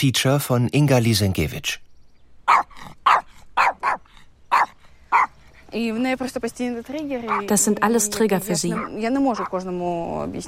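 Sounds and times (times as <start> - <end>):
speech: 0.0 - 1.9, 5.7 - 10.4
dog barking: 2.5 - 5.4, 7.3 - 7.6, 8.6 - 9.6.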